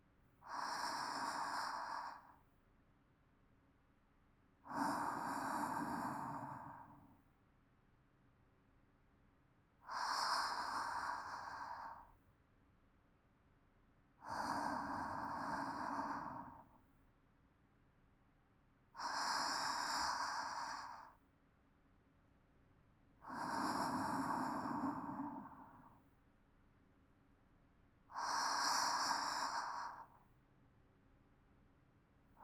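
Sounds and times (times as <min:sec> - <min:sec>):
calm sleep breathing: 0:00.4 - 0:02.5, 0:04.7 - 0:07.3, 0:09.8 - 0:12.2, 0:14.2 - 0:16.9, 0:18.9 - 0:21.2, 0:23.2 - 0:26.2, 0:28.1 - 0:30.3.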